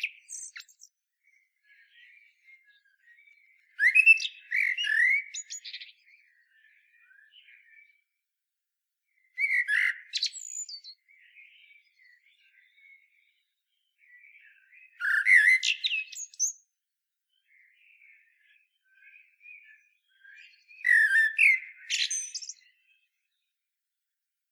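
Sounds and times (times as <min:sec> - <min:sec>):
common blackbird singing: 0:00.0 - 0:08.0, 0:09.2 - 0:16.6, 0:17.4 - 0:23.0.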